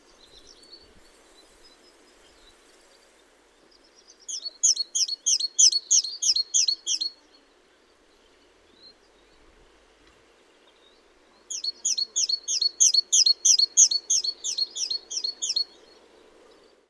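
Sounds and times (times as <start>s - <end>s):
Parus major calling: 4.3s - 7.1s, 11.5s - 15.6s.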